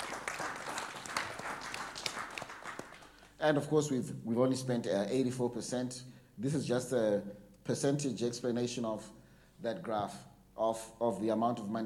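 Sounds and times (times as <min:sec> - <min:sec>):
audience applause: 0:00.0 - 0:03.3
speech: 0:03.4 - 0:11.8.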